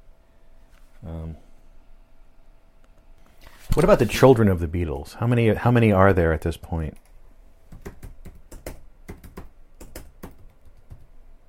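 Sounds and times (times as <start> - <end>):
speech: 1.0 - 1.5, 3.8 - 7.1
typing a search on a computer keyboard: 7.7 - 11.2.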